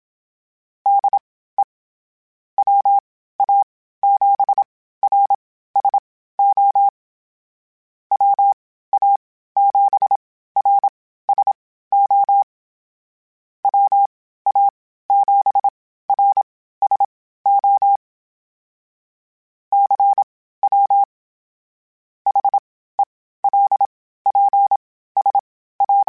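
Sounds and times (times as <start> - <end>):
Morse code beeps: 0.9 - 1.2, 2.6 - 6.9, 8.1 - 12.5, 13.6 - 18.0, 19.7 - 21.0, 22.3 - 22.6, 23.5 - 26.0.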